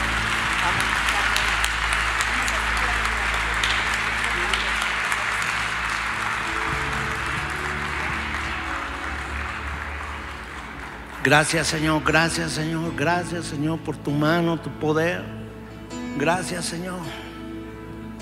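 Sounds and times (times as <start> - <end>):
audience applause: 0.0 - 12.8
speech: 11.2 - 15.4, 16.2 - 17.2.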